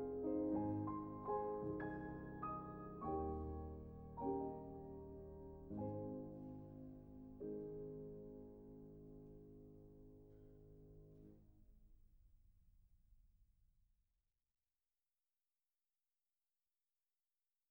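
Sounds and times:
waltz in A-flat major: 0:00.0 - 0:09.4.

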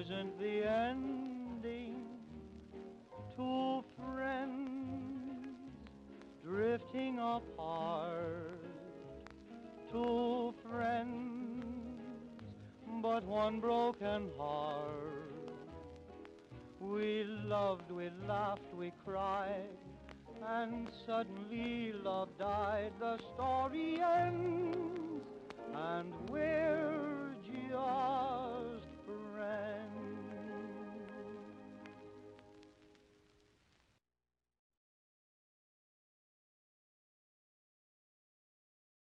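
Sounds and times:
orchestra with vocals: 0:00.0 - 0:09.0, 0:09.6 - 0:15.7, 0:16.6 - 0:32.4.

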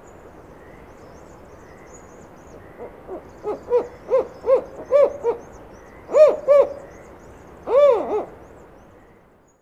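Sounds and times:
Spotted Owl giving low hollow hoots: 0:02.8 - 0:05.5, 0:06.1 - 0:06.9, 0:07.6 - 0:08.4.

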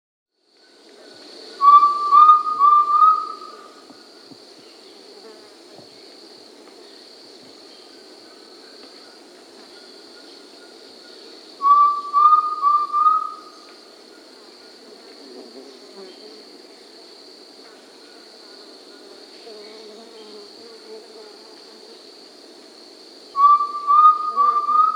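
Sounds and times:
Undulated Tinamou Crypturellus undulatus whistling in the Peruvian Amazon: 0:01.6 - 0:03.6, 0:11.6 - 0:13.5, 0:23.4 - 0:24.9.

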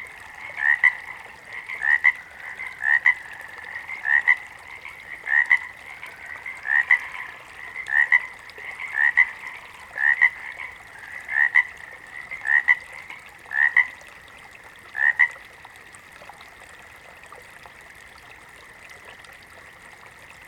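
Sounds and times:
water frog double croaks: 0:00.3 - 0:14.0, 0:14.9 - 0:15.4.

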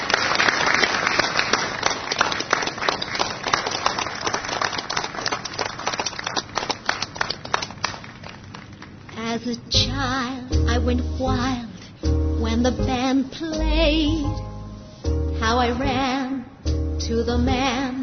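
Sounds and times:
audience applause welcoming a Broadway performer: 0:00.0 - 0:09.2
speech: 0:09.4 - 0:11.7, 0:12.6 - 0:14.5, 0:15.4 - 0:16.2, 0:17.0 - 0:17.9.

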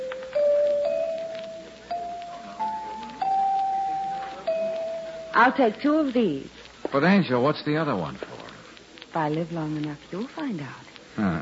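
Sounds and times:
chimes ringing: 0:00.0 - 0:05.6
speech: 0:05.4 - 0:08.3, 0:09.2 - 0:11.4.

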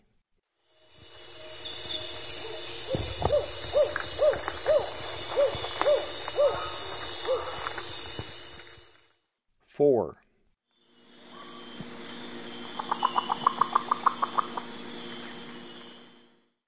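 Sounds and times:
Long-tailed Potoo calling in the eastern lowlands of South America: 0:01.6 - 0:08.3, 0:12.8 - 0:14.7.

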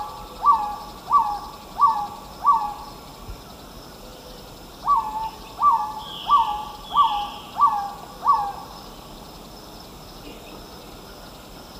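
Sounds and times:
Black-tailed Trogon singing mellow hooted notes: 0:00.0 - 0:02.9, 0:04.2 - 0:08.8
steady background noise: 0:00.0 - 0:11.7.

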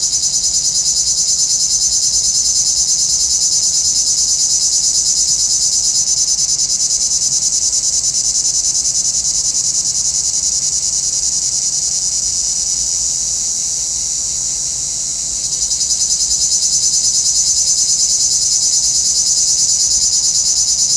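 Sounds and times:
cicadas: 0:00.0 - 0:20.9.

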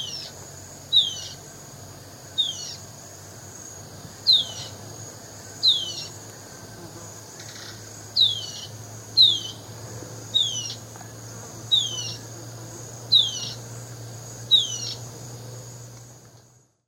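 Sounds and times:
Spot-backed Antbird in varzea of the Eastern Lowlands of S. America: 0:00.0 - 0:01.5, 0:02.3 - 0:02.9, 0:04.1 - 0:15.5.

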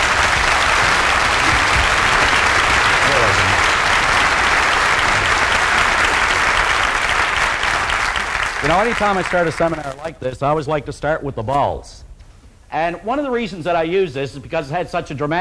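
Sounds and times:
seminar audience clapping for a speaker coming on stage: 0:00.0 - 0:10.2
speech: 0:08.7 - 0:12.1, 0:12.7 - 0:15.3.

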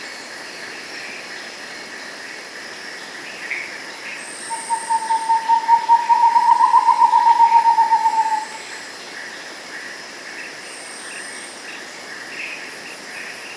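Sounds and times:
Rufescent screech owl song in the Andes: 0:04.5 - 0:08.6.

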